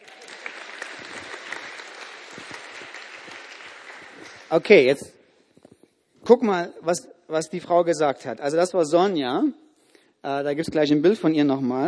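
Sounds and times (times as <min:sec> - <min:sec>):
applause: 0:00.0 - 0:05.0
speech: 0:04.5 - 0:05.2, 0:06.3 - 0:09.6, 0:10.2 - 0:11.8.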